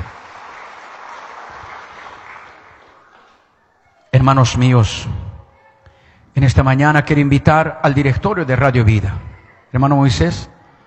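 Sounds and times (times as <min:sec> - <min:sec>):
audience clapping hands: 0:00.0 - 0:03.6
speech: 0:04.2 - 0:05.2, 0:06.4 - 0:10.5.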